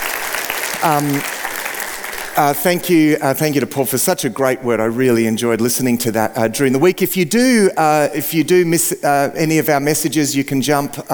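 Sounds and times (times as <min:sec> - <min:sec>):
audience clapping: 0:00.0 - 0:03.8
speech: 0:00.8 - 0:01.4, 0:02.4 - 0:11.1.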